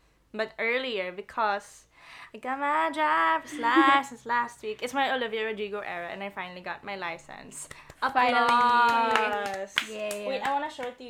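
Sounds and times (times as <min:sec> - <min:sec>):
speech: 0:00.3 - 0:11.0
applause: 0:07.7 - 0:11.0.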